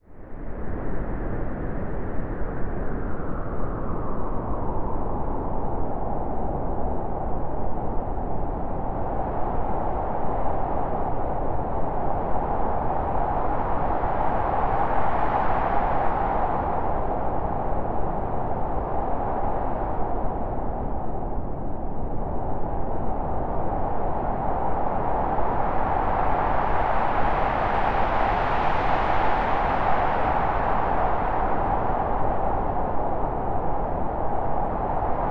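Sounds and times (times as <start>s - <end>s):
cold Arctic wind: 0.0s - 35.3s.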